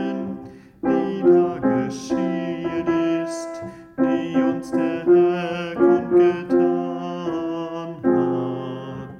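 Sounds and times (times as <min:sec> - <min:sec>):
alto singing a chorale: 0:00.0 - 0:09.1.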